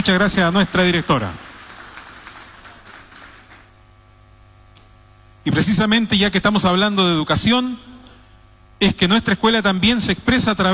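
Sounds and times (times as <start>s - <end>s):
speech: 0.0s - 1.4s, 5.5s - 7.9s, 8.8s - 10.7s
audience applause: 0.0s - 3.8s.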